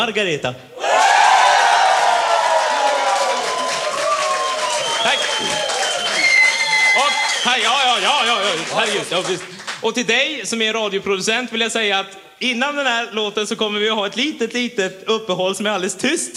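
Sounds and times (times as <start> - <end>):
speech: 0.0 - 0.8, 7.4 - 16.3
audience cheering: 0.8 - 9.8.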